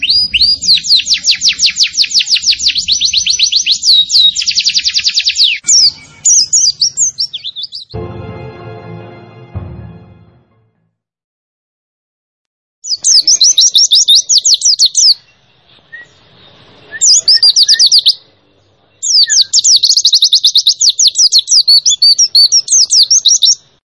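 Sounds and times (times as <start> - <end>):
white-eye chirping song: 0.0 - 8.0, 12.8 - 23.6.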